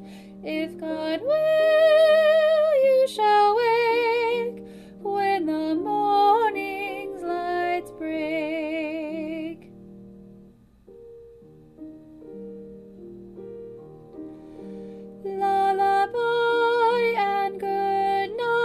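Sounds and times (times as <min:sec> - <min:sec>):
solo soprano singing a cradlesong: 0:00.0 - 0:09.8, 0:15.1 - 0:18.6.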